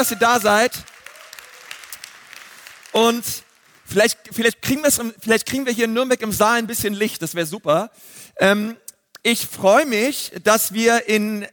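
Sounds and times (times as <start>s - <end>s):
speech: 0.0s - 0.9s, 3.0s - 11.5s
audience applause: 0.0s - 3.9s.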